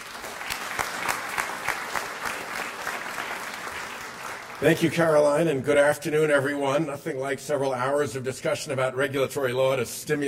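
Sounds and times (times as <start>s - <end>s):
audience applause: 0.0s - 5.2s
speech: 4.6s - 10.2s.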